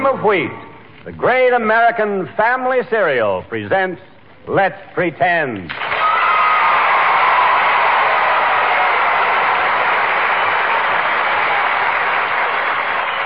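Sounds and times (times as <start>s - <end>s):
speech: 0.2s - 5.9s
audience round of applause: 5.7s - 13.2s.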